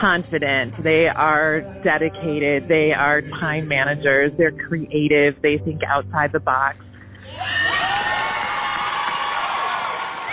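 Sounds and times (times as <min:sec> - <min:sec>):
speech: 0:00.0 - 0:07.7
audience applause: 0:07.3 - 0:10.3.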